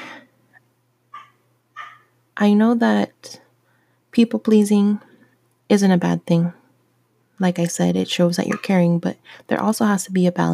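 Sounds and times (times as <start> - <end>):
low steady hum: 0.0 - 10.5
dogs barking: 1.1 - 2.2
speech: 2.4 - 3.4, 4.2 - 5.1, 5.7 - 6.6, 7.4 - 10.5.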